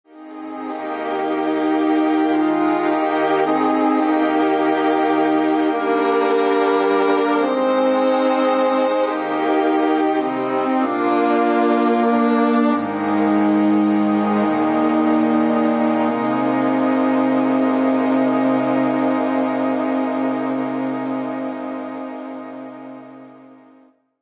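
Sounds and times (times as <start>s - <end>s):
backing track: 0.1s - 23.4s.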